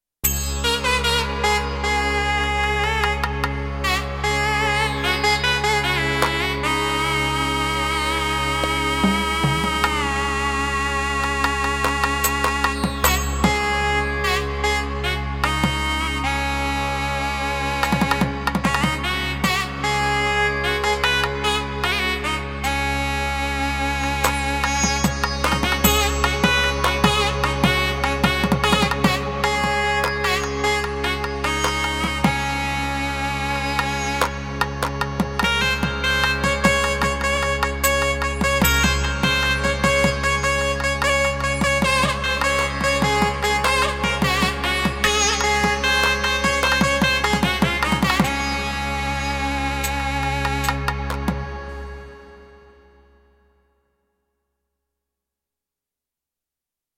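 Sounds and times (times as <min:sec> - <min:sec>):
nadaswaram playing: 0:00.2 - 0:52.8.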